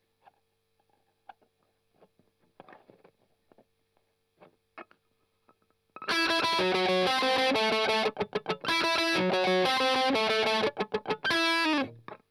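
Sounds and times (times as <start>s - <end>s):
strummed octaves: 6.0s - 12.1s.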